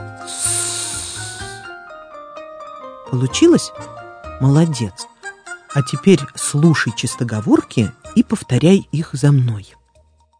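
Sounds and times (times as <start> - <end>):
voice hissing s sound: 0.0 - 1.8
speech: 3.1 - 5.1, 5.7 - 9.8.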